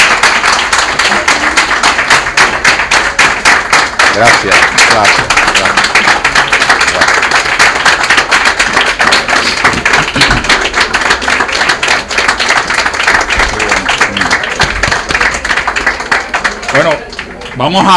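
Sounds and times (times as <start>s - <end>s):
audience applause: 0.0s - 17.9s
speech: 4.2s - 5.9s, 16.8s - 17.0s, 17.6s - 17.9s.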